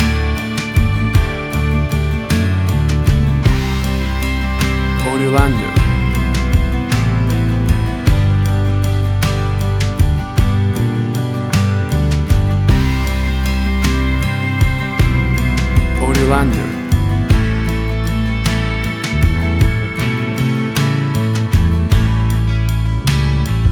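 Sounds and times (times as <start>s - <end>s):
country wedding waltz: 0.0s - 23.6s.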